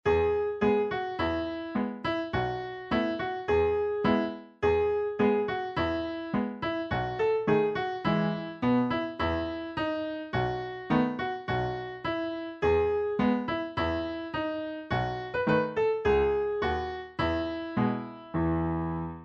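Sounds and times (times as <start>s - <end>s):
instrumental music: 0.1s - 19.2s.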